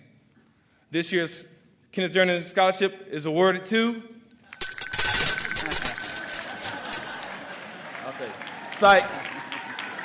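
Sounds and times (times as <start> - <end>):
speech: 0.9 - 4.2, 8.2 - 9.3
handbell from graduating the Louisiana Center for the Blind ringing: 4.6 - 7.3, 9.2 - 9.4.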